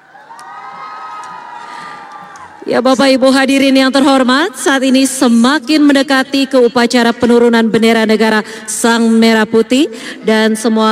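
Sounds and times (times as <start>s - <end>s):
scattered higher shouts: 0.0s - 2.6s
audience applauding and cheering at a flag-lowering ceremony: 0.0s - 2.7s
speech: 2.6s - 10.9s.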